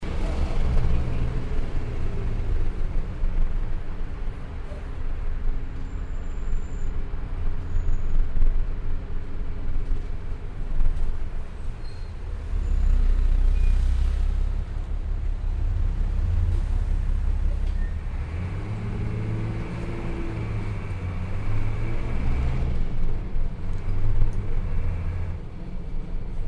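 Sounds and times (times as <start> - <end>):
bus interior: 0.0 - 26.4.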